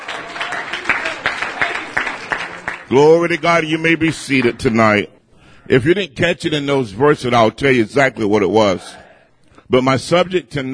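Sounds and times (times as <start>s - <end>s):
church congregation clapping hands in praise: 0.0s - 4.7s
speech: 2.9s - 9.0s, 9.7s - 10.7s.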